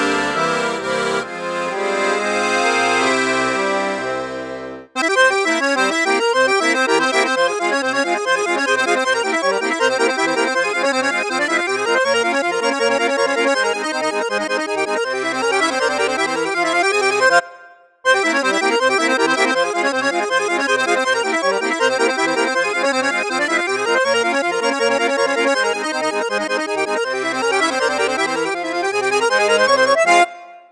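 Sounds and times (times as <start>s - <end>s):
Excelsior accordion on bassoon flute piccolo register: 0.0s - 30.7s.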